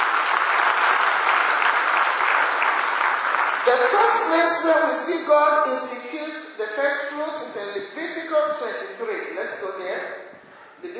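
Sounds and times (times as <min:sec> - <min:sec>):
audience clapping: 0:00.0 - 0:04.3
speech: 0:03.6 - 0:10.2, 0:10.8 - 0:10.9.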